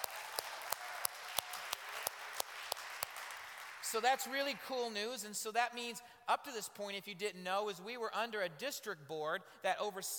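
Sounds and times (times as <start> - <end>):
audience clapping hands: 0.0 - 4.9
speech: 3.9 - 10.1.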